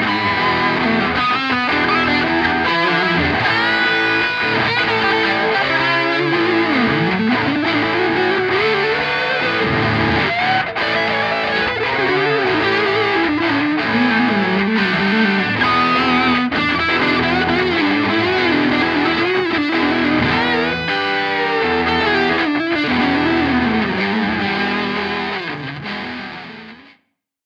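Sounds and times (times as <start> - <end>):
electric guitar with bridge pickup playing rhythm and solo: 0.0 - 27.0.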